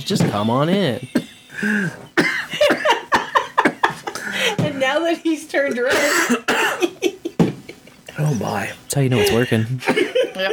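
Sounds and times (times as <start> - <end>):
speech: 0.0 - 2.0, 4.6 - 7.1, 8.2 - 10.5
person coughing and choking after a hit of smoke from a bowl: 1.1 - 4.1, 5.9 - 7.0, 9.1 - 10.3
laughter: 1.2 - 4.6, 6.8 - 10.5.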